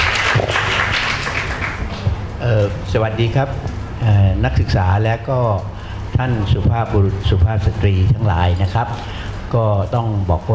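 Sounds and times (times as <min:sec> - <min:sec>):
audience applause: 0:00.0 - 0:02.2
speech: 0:02.5 - 0:10.5.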